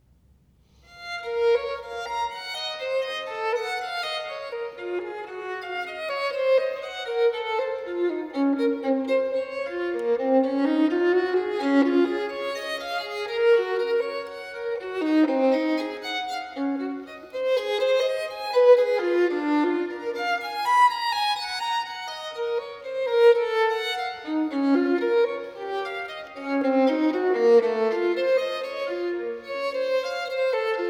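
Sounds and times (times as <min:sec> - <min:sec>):
solo violin partita: 0:00.7 - 0:30.8.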